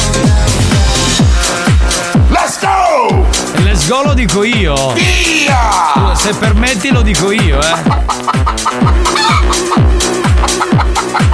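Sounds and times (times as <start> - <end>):
pounding house-music beat: 0.0 - 11.3
speech: 3.9 - 9.8
hen clucking: 5.8 - 11.3.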